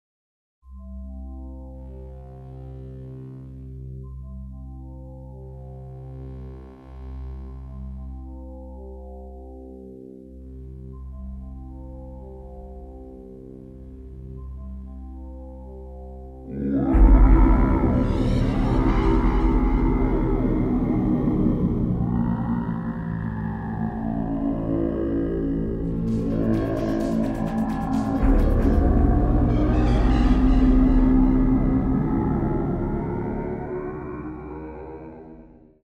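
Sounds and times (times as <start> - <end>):
chanting: 16.5 - 35.6.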